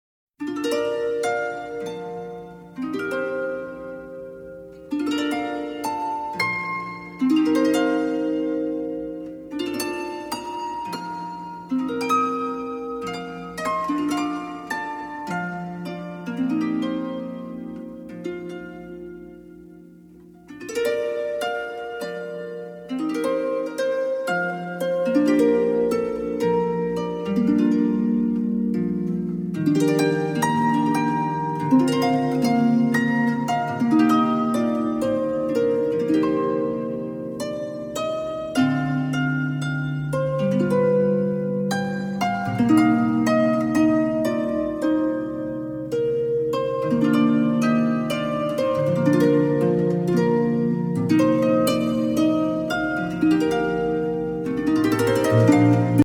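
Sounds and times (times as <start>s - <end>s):
harp: 0.4s - 56.0s.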